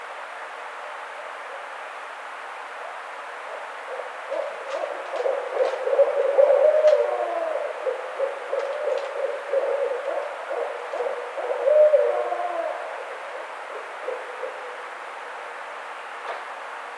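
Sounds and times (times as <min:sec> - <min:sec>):
barred owl hooting: 0:02.9 - 0:15.5.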